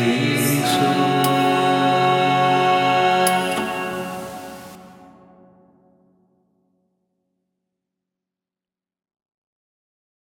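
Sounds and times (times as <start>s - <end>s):
contraltos singing a Kyrie: 0.0s - 5.3s.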